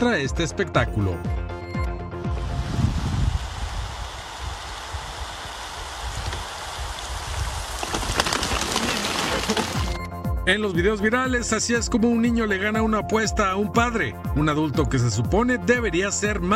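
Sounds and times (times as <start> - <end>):
speech: 0.0 - 1.5, 10.5 - 16.5
heavy rain pouring: 2.6 - 10.0
raindrops pattering on a surface: 5.2 - 10.0.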